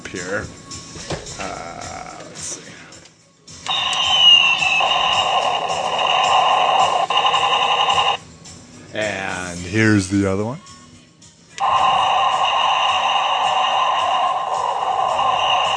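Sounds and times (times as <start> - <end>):
speech: 0.1 - 1.8, 9.7 - 10.7
tinny electronic toy cannon sound effect: 3.7 - 8.2, 11.6 - 15.7.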